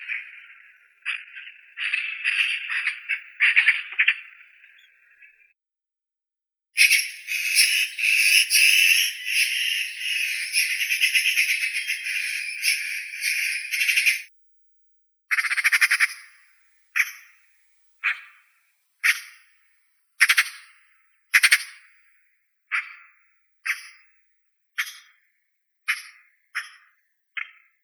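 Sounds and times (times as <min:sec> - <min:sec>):
Eurasian magpie Pica pica calling: 0:00.0 - 0:05.4, 0:06.8 - 0:14.3, 0:15.3 - 0:16.4, 0:17.0 - 0:17.4, 0:19.0 - 0:19.5, 0:20.2 - 0:20.8, 0:21.4 - 0:21.8, 0:23.7 - 0:24.0, 0:25.9 - 0:27.6.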